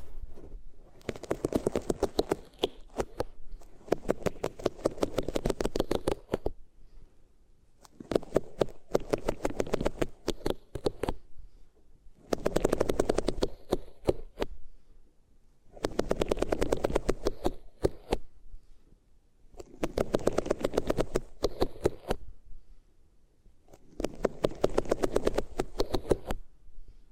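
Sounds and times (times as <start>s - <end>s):
rubbing on different materials: 0.0s - 6.6s, 7.8s - 11.3s, 12.2s - 14.5s, 15.7s - 18.3s, 19.6s - 22.2s, 23.7s - 26.4s.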